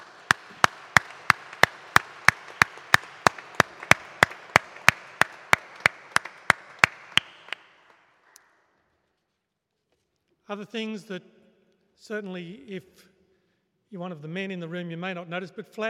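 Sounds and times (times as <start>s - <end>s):
round of applause: 0.0s - 8.7s
speech: 10.5s - 11.4s, 12.0s - 13.1s, 13.9s - 15.8s.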